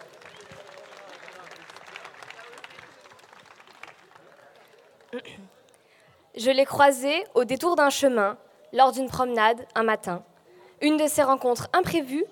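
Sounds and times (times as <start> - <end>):
audience applause: 0.0 - 5.3
speech: 5.1 - 5.6, 6.4 - 12.3.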